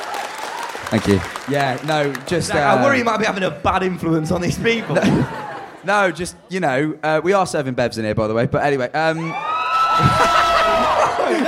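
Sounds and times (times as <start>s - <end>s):
audience cheering: 0.0s - 3.4s, 4.8s - 6.1s, 9.2s - 11.4s
speech: 0.9s - 9.4s, 10.0s - 10.4s, 11.3s - 11.4s
laughter: 4.2s - 6.3s, 9.8s - 11.4s.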